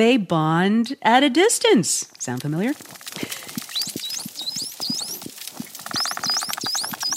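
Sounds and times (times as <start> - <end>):
speech: 0.0 - 3.4
three dolphins exchanging signature whistles: 3.7 - 7.1.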